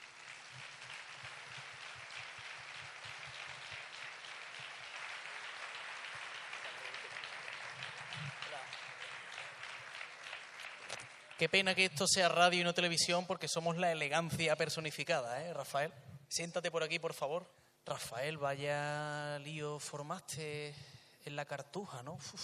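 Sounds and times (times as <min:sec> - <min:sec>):
audience applause welcoming a guest: 0:00.0 - 0:11.6
speech: 0:11.4 - 0:22.4.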